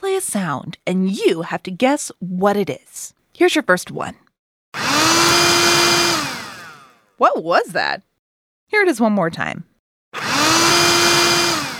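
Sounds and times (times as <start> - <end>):
speech: 0.2 - 4.8, 7.2 - 8.1, 8.7 - 10.2
robotic vacuum cleaner whirring: 4.8 - 7.0, 10.2 - 11.7.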